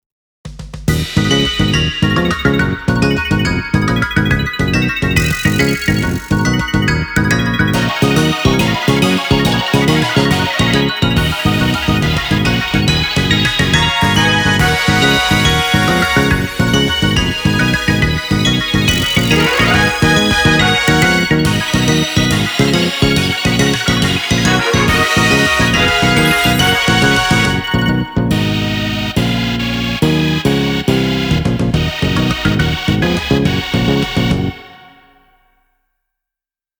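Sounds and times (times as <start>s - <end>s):
instrumental music: 0.9s - 35.2s.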